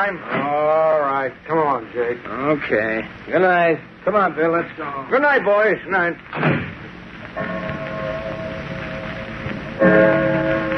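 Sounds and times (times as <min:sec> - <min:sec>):
speech: 0:00.0 - 0:06.8, 0:09.8 - 0:10.2
hiss: 0:00.0 - 0:10.7
clock striking the hour: 0:07.4 - 0:10.7.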